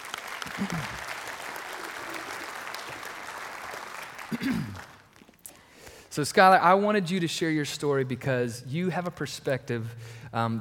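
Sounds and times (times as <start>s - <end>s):
audience applause welcoming a speaker at a talk: 0.0s - 5.3s
speech: 0.5s - 1.1s, 4.3s - 4.8s, 6.2s - 10.5s.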